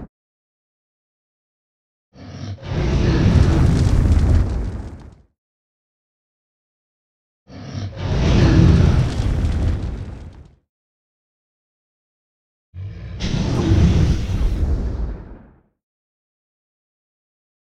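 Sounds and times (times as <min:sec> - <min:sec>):
dragon roaring: 0:02.2 - 0:04.7, 0:07.5 - 0:09.9, 0:12.8 - 0:15.3.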